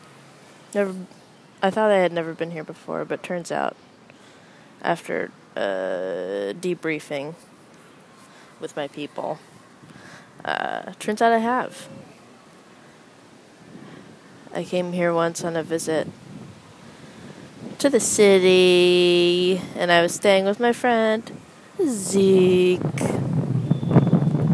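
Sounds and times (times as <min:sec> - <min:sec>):
speech: 0:00.7 - 0:03.9, 0:04.8 - 0:07.5, 0:08.6 - 0:09.5, 0:10.4 - 0:12.1, 0:14.6 - 0:16.2, 0:17.8 - 0:23.1
wind blowing on the microphone outdoors: 0:13.6 - 0:20.3, 0:21.2 - 0:24.5.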